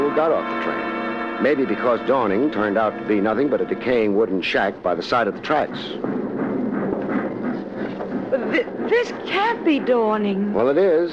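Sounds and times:
speech: 0.2s - 0.8s, 1.4s - 6.2s, 8.5s - 11.1s
horse hoofbeats clip-clopping: 3.5s - 11.1s.

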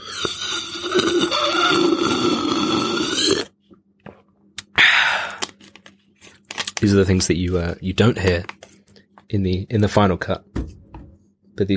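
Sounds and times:
person drinking water sipping and swallowing: 0.0s - 3.5s
sharp breathy exhale: 4.8s - 5.4s
speech: 6.8s - 8.6s, 9.3s - 10.7s, 11.6s - 11.7s.

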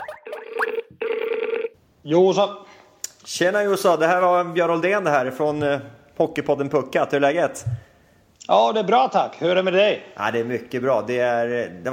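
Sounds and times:
telephone ringing tone: 0.0s - 1.8s
speech: 2.0s - 7.9s, 8.5s - 11.9s.

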